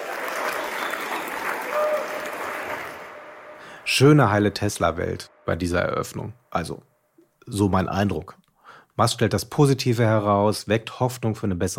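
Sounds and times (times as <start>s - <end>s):
audience applause: 0.0s - 4.1s
speech: 3.9s - 6.9s, 7.5s - 8.4s, 9.0s - 11.7s.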